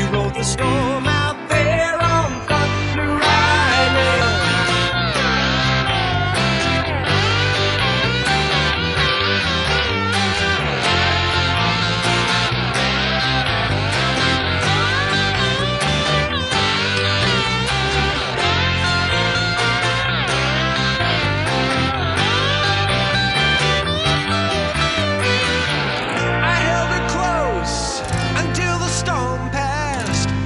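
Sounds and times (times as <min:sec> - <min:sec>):
drumless music track: 0:00.0 - 0:30.4.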